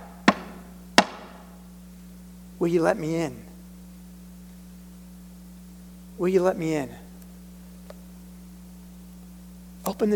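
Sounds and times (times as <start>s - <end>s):
knocking on a door: 0.2s - 1.3s
speech: 2.6s - 3.5s, 6.2s - 7.0s, 9.9s - 10.1s.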